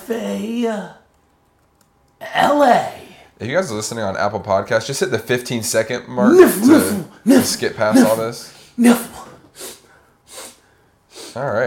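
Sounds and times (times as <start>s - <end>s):
speech: 0.1s - 1.0s, 2.2s - 9.3s, 11.4s - 11.6s
person sneezing: 6.2s - 11.4s
breathy hissing bursts: 6.3s - 11.4s.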